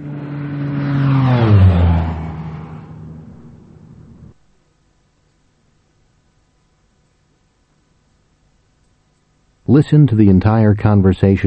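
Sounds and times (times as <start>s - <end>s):
airplane flying overhead: 0.0s - 4.4s
speech: 9.7s - 11.4s.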